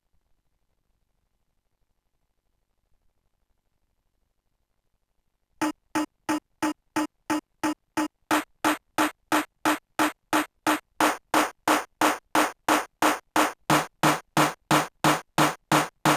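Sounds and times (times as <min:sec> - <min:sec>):
drum: 0:06.0 - 0:16.1.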